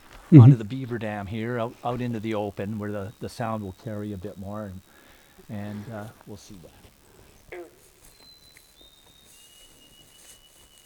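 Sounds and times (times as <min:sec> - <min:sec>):
quiet hiss: 0:00.0 - 0:10.8
speech: 0:00.3 - 0:06.9
white-throated sparrow call: 0:07.2 - 0:10.8.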